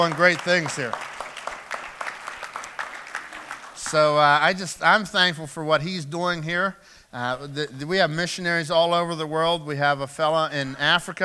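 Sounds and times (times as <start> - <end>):
speech: 0.0 - 1.1, 3.9 - 11.2
audience applause: 0.0 - 4.4.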